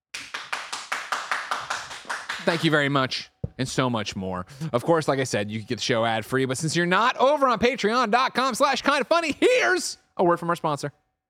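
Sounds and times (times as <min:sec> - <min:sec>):
hand clapping: 0:00.1 - 0:02.9
speech: 0:02.4 - 0:11.0.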